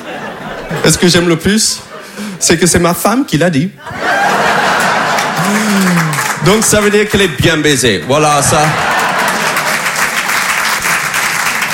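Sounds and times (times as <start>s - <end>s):
laughter: 0.0s - 2.4s, 3.8s - 6.4s, 8.3s - 10.3s
speech: 0.7s - 4.4s, 5.5s - 8.9s
crowd applauding: 4.0s - 7.0s, 8.4s - 11.7s.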